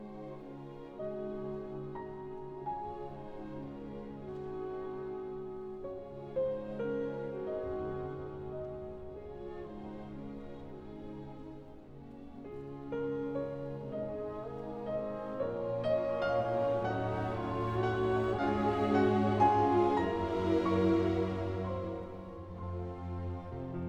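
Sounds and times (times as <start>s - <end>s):
piano concerto in B flat minor: 0.0s - 23.8s.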